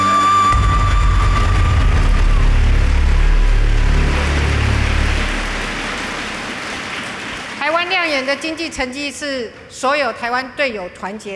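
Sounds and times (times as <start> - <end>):
crowd applauding: 0.4 - 9.2
speech: 8.3 - 11.3.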